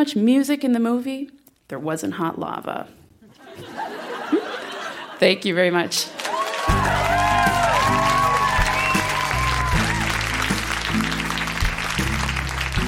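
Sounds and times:
speech: 0:00.0 - 0:03.0, 0:05.2 - 0:06.8
laughter: 0:03.3 - 0:05.2
audience applause and cheering: 0:06.2 - 0:12.8.

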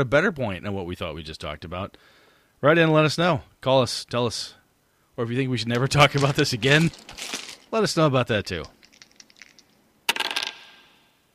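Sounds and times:
speech: 0:00.0 - 0:04.6, 0:05.2 - 0:08.8
dice roll in a tabletop game session: 0:05.7 - 0:10.8.

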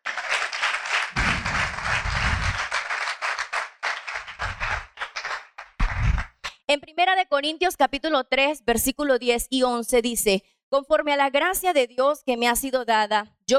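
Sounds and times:
audience applauding: 0:00.0 - 0:06.5
speech: 0:06.7 - 0:13.5.

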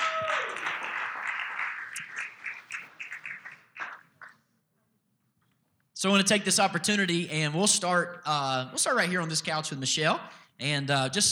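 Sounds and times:
congregation applauding as women come up on stage: 0:00.0 - 0:04.3
speech: 0:06.0 - 0:11.2.

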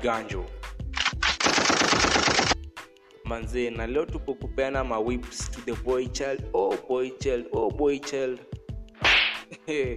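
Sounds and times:
speech: 0:00.0 - 0:00.6, 0:03.3 - 0:08.5, 0:09.7 - 0:09.9
automatic gunfire: 0:01.0 - 0:02.6
gunshots: 0:01.0 - 0:02.6.

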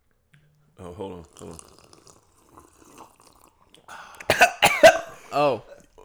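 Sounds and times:
speech: 0:00.8 - 0:01.8, 0:05.3 - 0:05.7
slurping hot coffee: 0:00.8 - 0:06.0
person coughing: 0:03.9 - 0:05.5.

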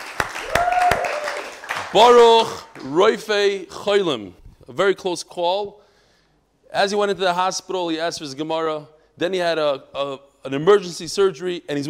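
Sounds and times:
audience applause: 0:00.0 - 0:02.9
speech: 0:01.9 - 0:05.8, 0:06.7 - 0:11.8.

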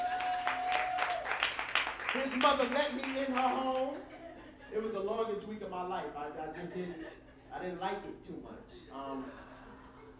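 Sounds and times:
audience applause: 0:00.0 - 0:03.9
speech: 0:02.2 - 0:09.5.

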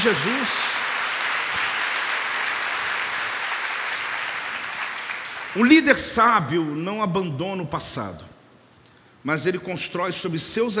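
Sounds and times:
speech: 0:00.0 - 0:00.7, 0:05.5 - 0:08.3, 0:09.2 - 0:10.7
audience applause: 0:00.0 - 0:05.8.

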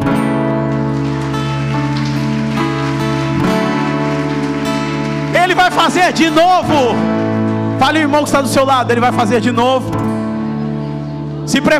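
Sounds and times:
sustained keyboard chords: 0:00.0 - 0:11.7
audience applauding: 0:00.2 - 0:08.6
speech: 0:05.6 - 0:07.2, 0:07.8 - 0:10.1, 0:11.5 - 0:11.7.

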